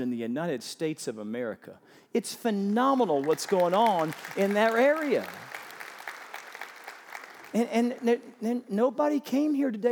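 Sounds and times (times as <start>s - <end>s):
speech: 0.0s - 5.6s, 7.5s - 9.9s
audience applause: 2.8s - 8.2s.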